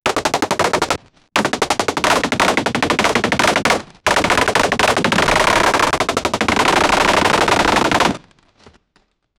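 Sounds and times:
arrows firing rapidly: 0.1 - 8.3.

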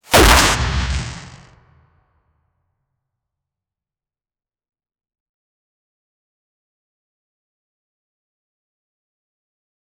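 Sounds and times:
punch sound effect: 0.0 - 1.5.

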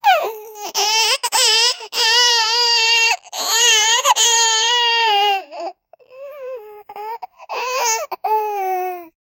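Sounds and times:
stuck baby crying: 0.0 - 9.1.

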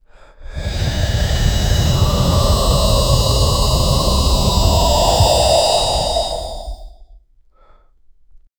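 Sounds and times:
dragon roaring: 0.5 - 7.0.

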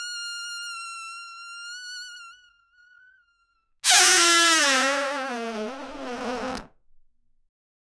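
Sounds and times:
person's body beginning to inflate: 3.9 - 6.7.

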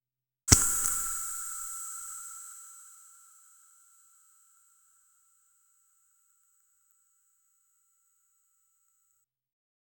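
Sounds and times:
toxic acid potion splashing: 0.5 - 2.2.

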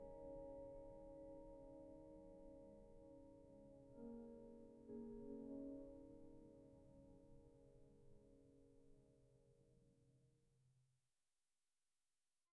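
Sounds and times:
sparse felt piano: 0.0 - 9.0.

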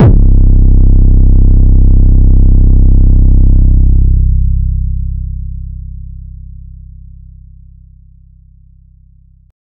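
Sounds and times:
bass: 0.0 - 9.6.

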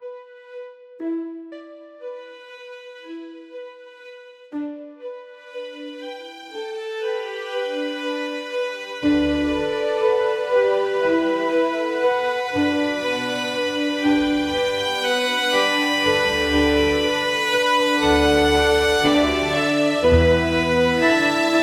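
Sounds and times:
magical adventurous orchestral score: 4.6 - 21.6.

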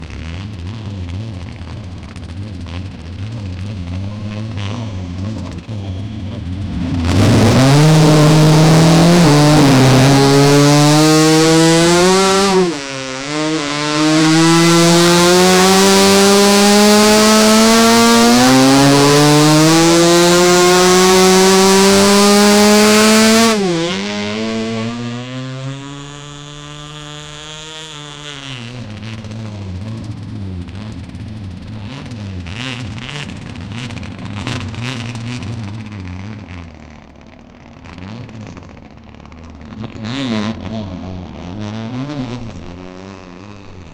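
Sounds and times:
race motorbike with V4 engine: 0.0 - 43.9.

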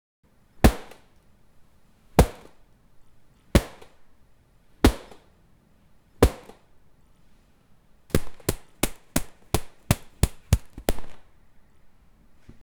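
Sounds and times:
boxing punches: 0.6 - 1.2, 2.1 - 2.6, 3.5 - 4.1, 4.8 - 5.3, 6.2 - 6.8, 8.1 - 11.6.

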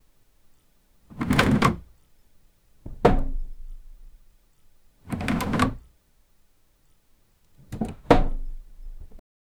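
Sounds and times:
wooden chest opening: 1.1 - 1.9, 2.9 - 4.2, 5.1 - 5.8, 7.7 - 9.2.

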